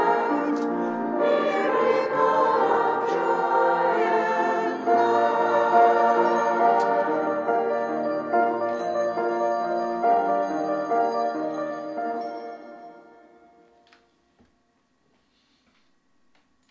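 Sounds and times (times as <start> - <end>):
choir singing a Ukrainian winter holiday song: 0.0 - 12.8.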